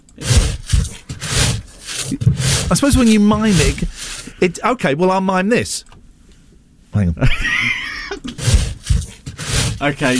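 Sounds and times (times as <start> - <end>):
speech: 0.2 - 0.4, 2.1 - 5.9, 7.0 - 7.7, 9.8 - 10.1
digging sound effect: 0.2 - 4.4, 8.2 - 10.1
laughter: 7.2 - 8.4.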